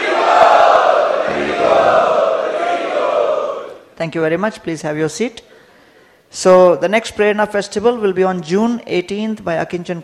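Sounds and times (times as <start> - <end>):
crowd loudly chanting in unison at an evening devotional festival: 0.0 - 3.8
speech: 4.0 - 5.5, 6.3 - 10.0.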